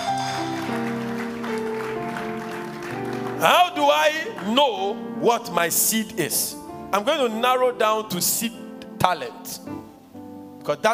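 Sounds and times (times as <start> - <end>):
audience clapping: 0.0 - 5.0
organ or keyboard chords: 0.0 - 10.9
speech: 3.4 - 9.8, 10.6 - 10.9.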